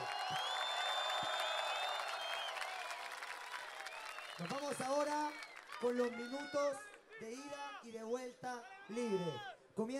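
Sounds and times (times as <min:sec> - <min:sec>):
audience applause: 0:00.0 - 0:06.1
speech: 0:04.4 - 0:09.9.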